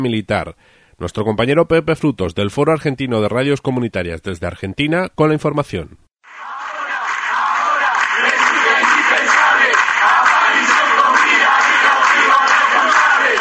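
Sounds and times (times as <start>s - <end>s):
speech: 0.0s - 6.5s
protest crowd chanting in the streets: 6.2s - 13.3s.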